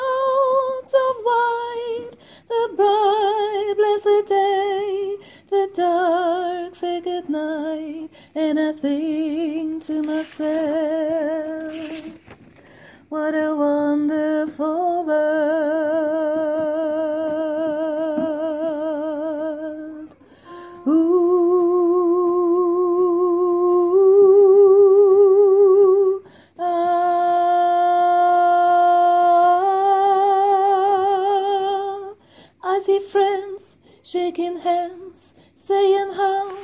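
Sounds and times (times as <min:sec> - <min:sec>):
soprano singing: 0:00.0 - 0:12.2, 0:13.1 - 0:36.6.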